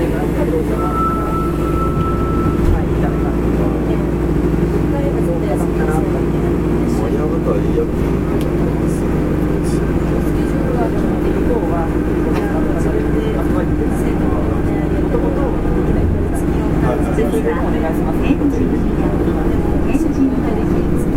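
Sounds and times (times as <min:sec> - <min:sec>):
Fukuoka City Subway 3000 series train running on the Nanakuma Line: 0:00.0 - 0:21.1
murmuring voices: 0:00.0 - 0:21.1
thin whining tone: 0:00.6 - 0:04.1.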